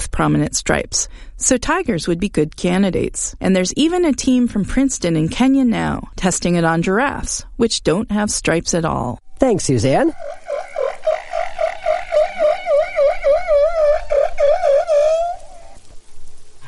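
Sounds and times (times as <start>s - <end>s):
speech: 0.2s - 11.2s
male humpback whale song: 9.8s - 15.9s.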